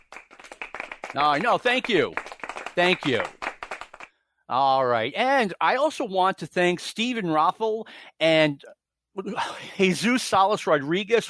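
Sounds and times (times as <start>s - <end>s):
small live studio audience clapping at Stick to Wrestling headquarters: 0.0s - 4.2s
speech: 1.2s - 2.2s, 2.8s - 3.4s, 4.5s - 11.2s.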